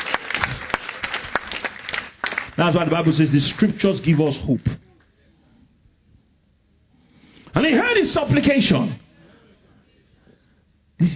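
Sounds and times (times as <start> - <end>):
audience clapping: 0.0 - 4.4
speech: 2.6 - 4.8, 8.2 - 9.0.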